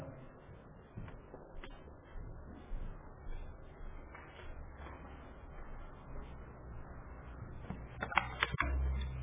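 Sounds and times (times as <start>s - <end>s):
plastic cruise identification cards being handled: 8.0s - 9.1s.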